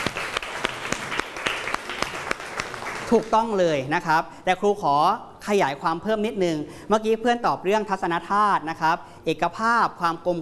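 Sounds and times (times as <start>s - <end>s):
students clapping: 0.0s - 3.5s
speech: 3.1s - 10.3s.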